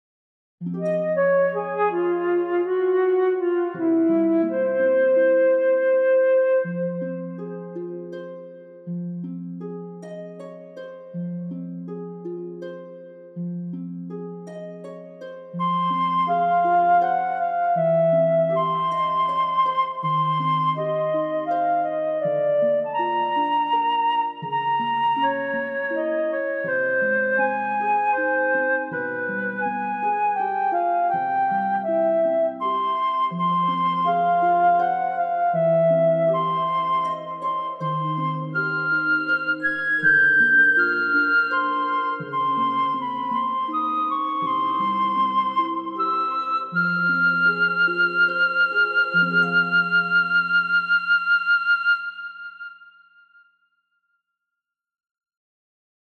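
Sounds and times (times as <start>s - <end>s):
kazabue reverberating with loneliness as background music: 0.6s - 8.2s, 15.5s - 53.5s.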